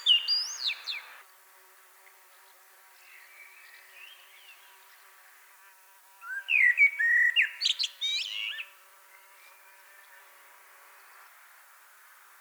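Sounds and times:
common blackbird Turdus merula singing: 0.0 - 1.2, 6.2 - 8.7.

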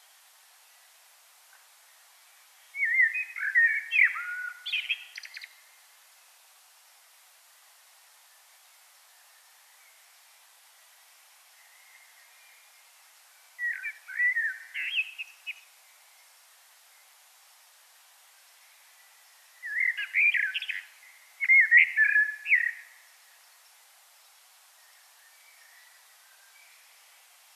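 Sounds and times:
common blackbird song: 2.2 - 5.8, 10.8 - 17.2, 18.5 - 27.5.

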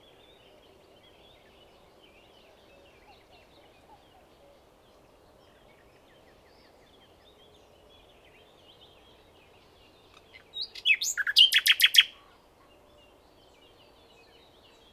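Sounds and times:
Common nightingale Luscinia megarhynchos song: 10.1 - 12.3.

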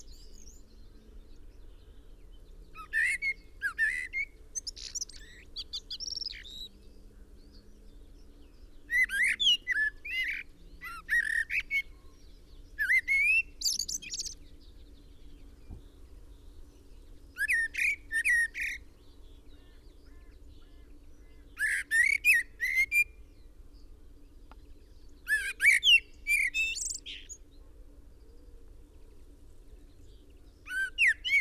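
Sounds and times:
common blackbird whistled song: 2.8 - 6.7, 8.8 - 12.0, 12.8 - 16.0, 17.4 - 18.9, 20.1 - 23.2, 25.2 - 27.4, 30.6 - 31.3.

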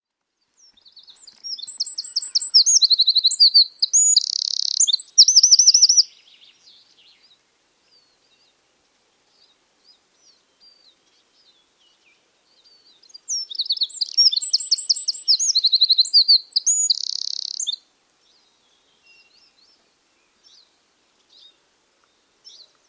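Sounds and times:
Eurasian wren singing: 0.6 - 8.5, 9.4 - 17.8.

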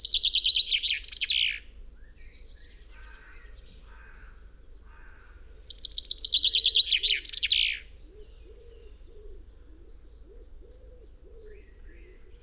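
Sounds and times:
Common chaffinch Fringilla coelebs singing: 0.0 - 1.6, 5.7 - 7.8.

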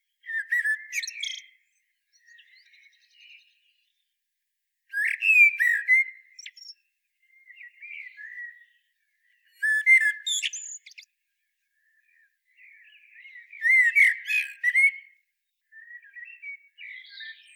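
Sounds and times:
common blackbird singing: 0.1 - 4.1, 4.9 - 11.1, 11.8 - 17.5.

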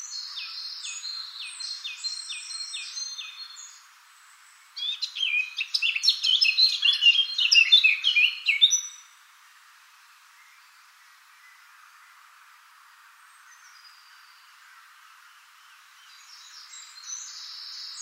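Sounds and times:
Eurasian blackcap song: 0.0 - 3.8, 4.8 - 9.1, 16.0 - 18.0.

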